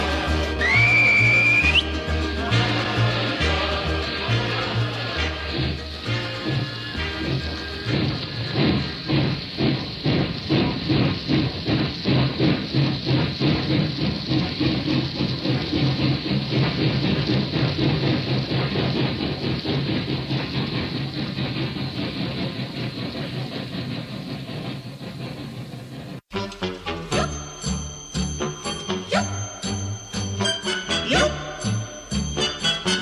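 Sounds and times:
steam train whistle: 0.0 - 9.2, 26.3 - 33.0
departing steam train engine chuffing: 0.0 - 33.0.

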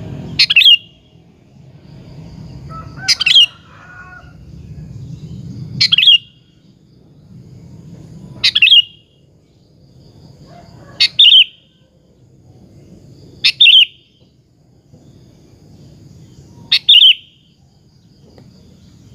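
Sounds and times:
sooty-headed bulbul singing bubbling phrases: 0.0 - 3.7, 5.2 - 6.8, 8.4 - 9.2, 11.0 - 11.7, 13.4 - 14.4, 16.6 - 17.5.

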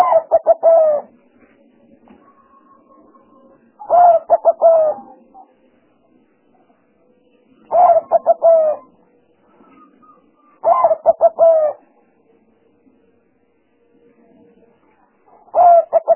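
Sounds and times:
spotted dove cooing: 0.0 - 1.2, 2.2 - 5.6, 7.6 - 12.0, 15.3 - 16.1
faint hum: 0.0 - 16.1.

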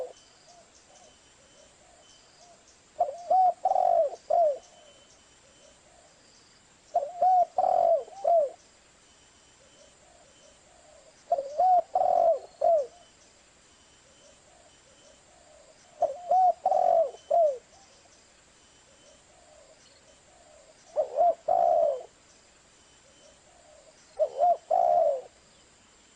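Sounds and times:
spotted dove cooing: 0.0 - 6.2, 6.9 - 8.6, 9.6 - 13.1, 14.1 - 18.0, 18.9 - 22.2, 23.0 - 25.4.

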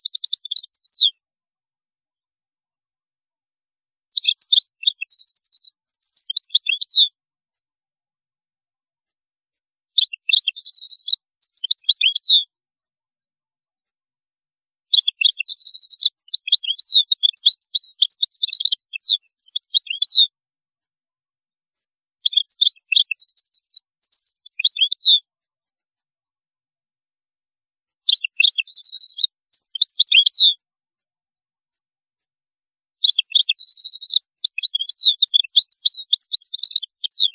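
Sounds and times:
European goldfinch singing: 0.0 - 1.1, 4.1 - 7.1, 10.0 - 12.5, 14.9 - 20.3, 22.2 - 25.2, 28.1 - 30.6, 33.0 - 37.3.

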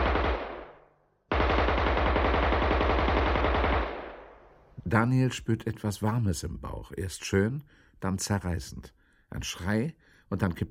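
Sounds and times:
submachine gun firing: 0.0 - 4.4
speech: 4.9 - 10.6.

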